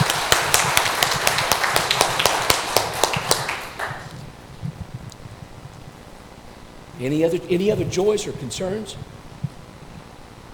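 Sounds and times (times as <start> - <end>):
audience cheering: 0.0 - 4.1
speech: 7.0 - 9.2.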